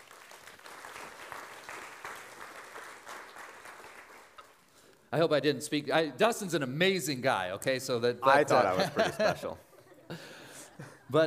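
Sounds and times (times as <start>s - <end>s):
audience applause: 0.0s - 4.7s
speech: 5.1s - 10.2s
laughter: 8.4s - 11.2s.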